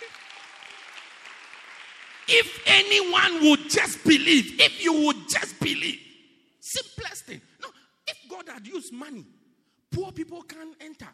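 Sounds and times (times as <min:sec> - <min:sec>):
audience clapping: 0:00.0 - 0:03.5
speech: 0:02.3 - 0:07.5, 0:08.5 - 0:11.1.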